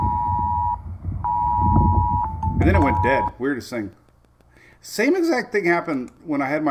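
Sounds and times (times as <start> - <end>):
phone tornado warning alert tone: 0.6 - 3.4
speech: 2.6 - 4.0, 4.8 - 6.6.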